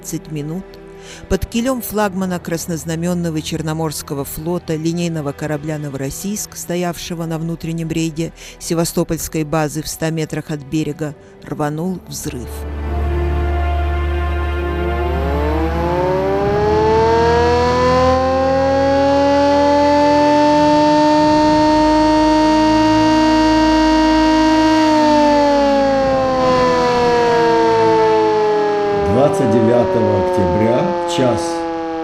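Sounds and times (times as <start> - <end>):
speech: 0.0 - 12.8
ship's combat alarm siren: 13.0 - 32.0.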